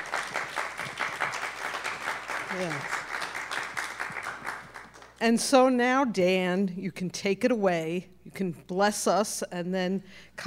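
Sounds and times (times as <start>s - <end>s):
audience applause at a church service: 0.0s - 5.1s
speech: 2.5s - 3.0s, 5.2s - 10.4s.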